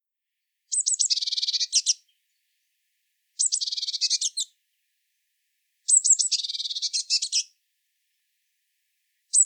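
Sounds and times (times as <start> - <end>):
Eurasian blue tit Cyanistes caeruleus harsh buzzy churring calls: 0.7 - 2.0, 3.4 - 4.5, 5.9 - 7.5.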